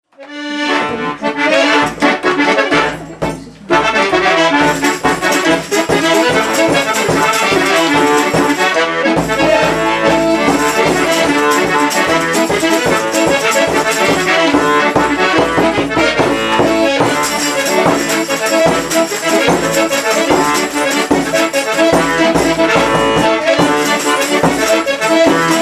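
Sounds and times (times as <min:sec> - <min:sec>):
polka music: 0:00.1 - 0:25.5.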